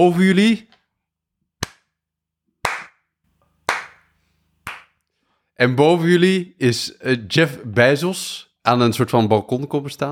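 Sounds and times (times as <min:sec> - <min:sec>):
speech: 0:00.0 - 0:00.7, 0:05.6 - 0:10.1
slow clapping: 0:02.6 - 0:03.0, 0:03.7 - 0:04.1, 0:04.7 - 0:05.0.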